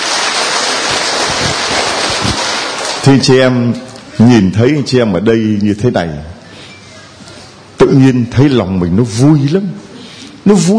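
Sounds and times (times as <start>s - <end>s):
audience applause: 0.0s - 3.5s
speech: 3.0s - 6.4s, 7.9s - 9.8s, 10.4s - 10.7s.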